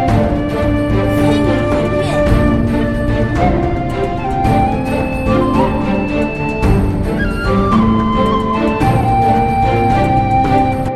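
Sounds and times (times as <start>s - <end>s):
ethereal grand atmospheric music: 0.0s - 10.9s.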